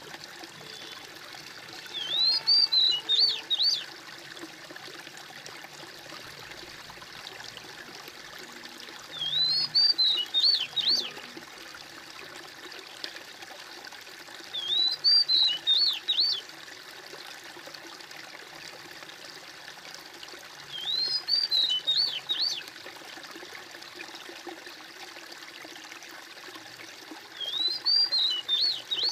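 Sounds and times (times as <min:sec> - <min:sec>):
bird whistled song: 0:01.9 - 0:03.9, 0:09.1 - 0:11.2, 0:14.5 - 0:16.4, 0:20.7 - 0:22.7, 0:27.4 - 0:29.0.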